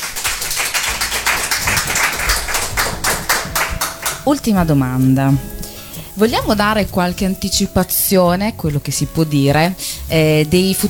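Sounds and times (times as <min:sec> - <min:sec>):
applause: 0:00.0 - 0:04.5
speech: 0:04.2 - 0:05.6, 0:06.2 - 0:10.8.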